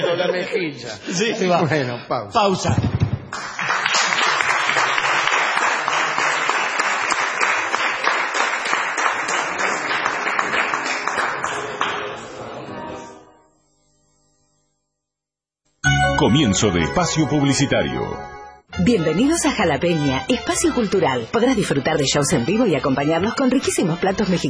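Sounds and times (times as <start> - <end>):
laughter: 0.0 - 2.2
speech: 0.2 - 2.9, 16.2 - 24.4
audience applause: 3.3 - 12.6.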